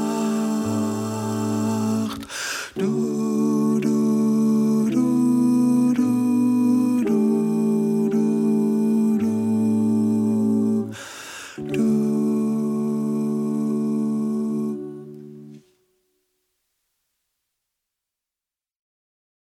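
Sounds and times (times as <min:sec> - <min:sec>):
tenor singing: 0:00.0 - 0:15.6.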